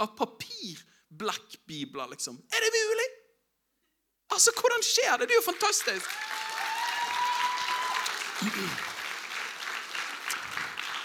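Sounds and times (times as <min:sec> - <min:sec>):
speech: 0:00.0 - 0:03.2, 0:04.4 - 0:06.4, 0:08.4 - 0:08.9
person clapping hands: 0:06.0 - 0:11.0.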